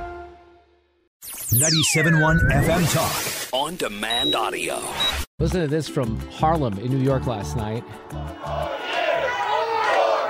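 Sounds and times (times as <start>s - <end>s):
speech: 1.5s - 9.0s
street crowd cheering: 8.0s - 10.2s.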